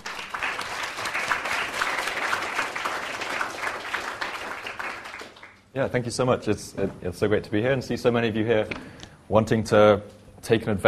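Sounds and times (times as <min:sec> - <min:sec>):
audience applause: 0:00.0 - 0:05.7
speech: 0:05.8 - 0:10.8.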